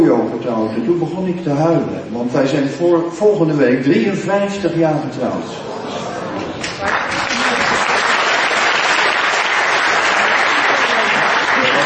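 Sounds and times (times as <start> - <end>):
speech: 0.2 - 6.1, 6.8 - 7.1
audience applause: 6.4 - 11.8.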